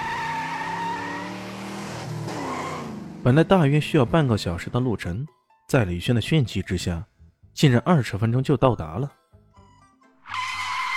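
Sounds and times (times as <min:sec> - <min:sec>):
tire squeal: 0:00.0 - 0:01.6, 0:02.2 - 0:03.0, 0:10.2 - 0:10.9
car engine revving hard as it speeds away: 0:00.0 - 0:03.3
speech: 0:03.2 - 0:09.2.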